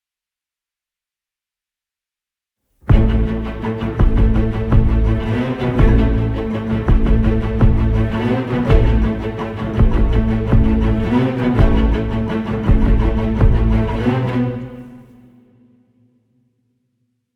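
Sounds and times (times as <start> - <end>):
cinematic music: 2.9 - 15.7.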